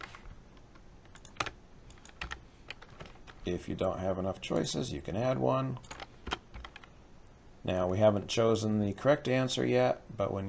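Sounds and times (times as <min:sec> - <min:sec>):
computer keyboard typing: 0:00.0 - 0:03.5, 0:05.8 - 0:06.9
speech: 0:03.5 - 0:05.9, 0:07.6 - 0:10.4.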